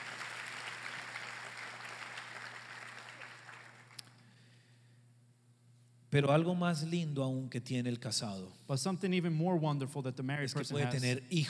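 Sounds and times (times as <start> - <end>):
crowd round of applause: 0.0 - 4.0
low electrical hum: 0.0 - 11.4
speech: 6.1 - 11.4.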